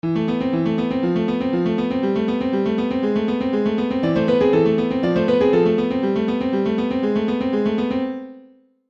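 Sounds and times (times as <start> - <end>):
piano: 0.0 - 8.7.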